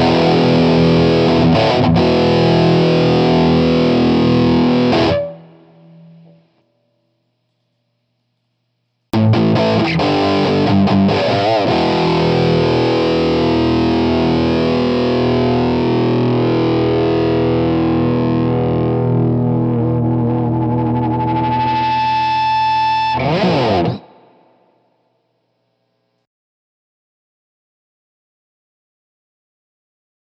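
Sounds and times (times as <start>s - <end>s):
distorted guitar amp crunch: 0.0s - 6.5s, 9.2s - 24.6s.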